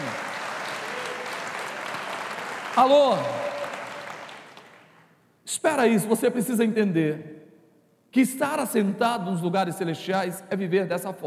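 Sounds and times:
audience applause: 0.0s - 5.0s
speech: 2.8s - 3.5s, 5.6s - 7.4s, 8.1s - 11.2s.

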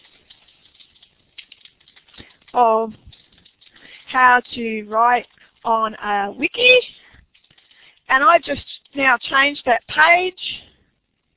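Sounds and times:
soft typing on a computer keyboard during wiki page editing: 0.0s - 5.7s, 6.9s - 9.1s
speech: 2.6s - 3.0s, 4.1s - 7.0s, 8.1s - 10.6s.

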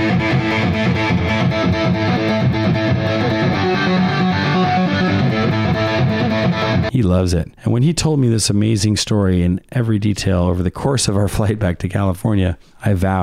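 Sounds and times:
heavily distorted electric guitar riff: 0.0s - 6.9s
speech: 6.9s - 13.2s.

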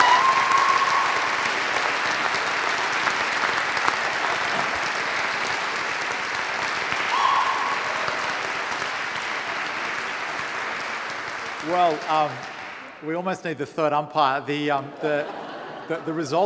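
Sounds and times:
audience applause: 0.0s - 13.0s
speech: 11.8s - 16.4s
laughter: 14.8s - 16.4s.

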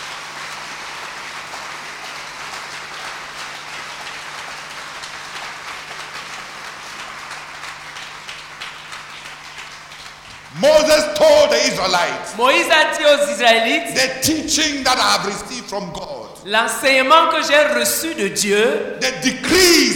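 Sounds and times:
crowd applauding: 0.0s - 12.6s
speech: 10.6s - 19.9s.

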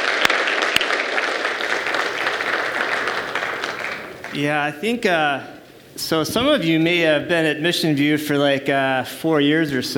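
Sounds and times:
audience applause: 0.0s - 4.6s
speech: 4.4s - 9.9s.

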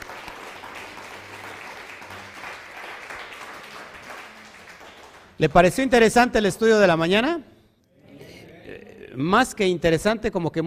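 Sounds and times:
crowd applause: 0.0s - 5.3s
speech: 5.4s - 7.5s, 9.2s - 10.6s.

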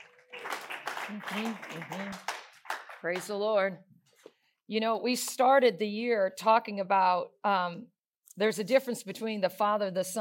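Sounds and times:
crowd clapping: 0.0s - 3.5s
speech: 1.1s - 2.3s, 3.0s - 3.9s, 4.7s - 10.1s.

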